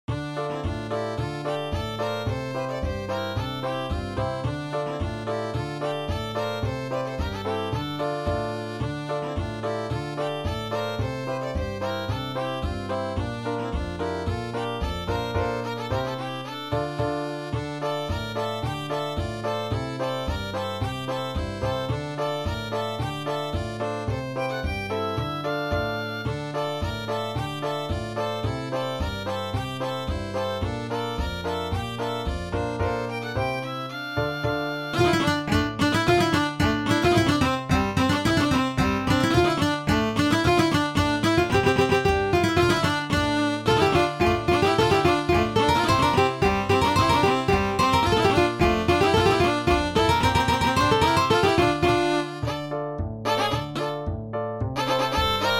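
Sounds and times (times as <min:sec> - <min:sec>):
polka music: 0:00.0 - 0:55.5.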